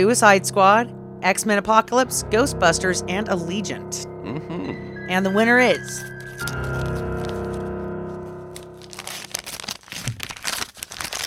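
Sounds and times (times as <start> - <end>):
speech: 0.0 - 6.7
steady tone: 0.0 - 8.7
paper envelope being torn open: 6.0 - 11.2.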